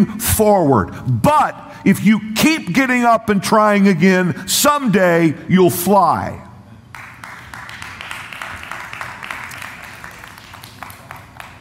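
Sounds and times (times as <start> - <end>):
speech: 0.0 - 6.4
live audience applause: 6.9 - 11.6.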